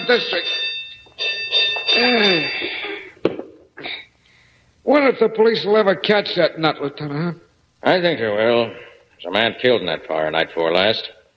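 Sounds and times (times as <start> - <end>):
fire alarm box bell ringing at a fire station: 0.0 - 3.2
speech: 0.1 - 0.6, 2.0 - 3.0, 4.9 - 11.2.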